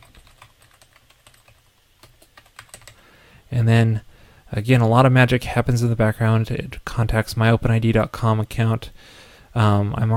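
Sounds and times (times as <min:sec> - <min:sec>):
typing a URL on a computer keyboard: 0:00.0 - 0:03.0
speech: 0:03.5 - 0:10.1.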